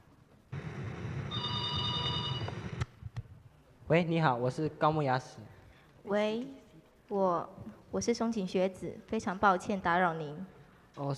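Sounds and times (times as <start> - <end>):
telephone ringing: 1.3 - 2.7
speech: 3.9 - 11.1.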